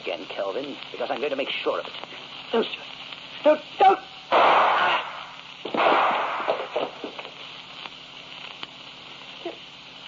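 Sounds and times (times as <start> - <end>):
speech: 0.5 - 4.0
gunshot in a radio drama: 4.3 - 7.2.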